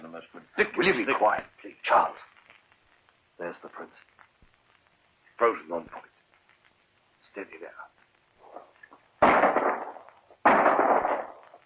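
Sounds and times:
speech: 0.2s - 2.3s, 3.4s - 4.1s, 5.4s - 6.1s, 7.4s - 7.9s
shotgun shot at a bird: 9.2s - 11.5s.

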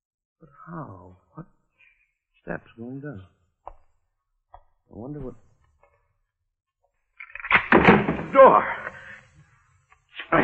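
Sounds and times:
speech: 0.7s - 1.5s, 2.4s - 3.4s, 4.9s - 5.5s, 8.3s - 9.0s
door: 7.4s - 8.4s.

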